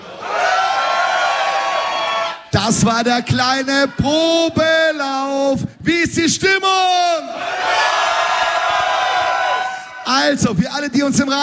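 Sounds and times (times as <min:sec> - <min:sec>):
crowd screaming and cheering: 0:00.0 - 0:02.6, 0:07.3 - 0:10.4
speech: 0:02.5 - 0:08.0, 0:10.1 - 0:11.4.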